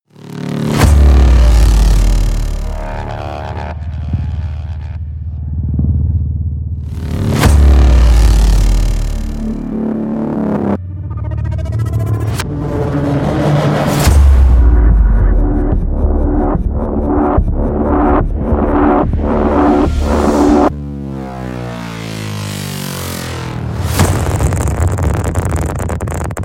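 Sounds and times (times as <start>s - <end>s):
warp tunnel sound effect: 0.1s - 26.4s.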